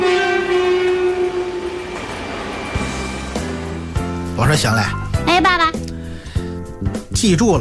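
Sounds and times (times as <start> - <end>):
high-speed train horn: 0.0 - 3.7
high-speed train rushing along: 0.0 - 6.2
speech: 4.4 - 5.8, 7.2 - 7.5.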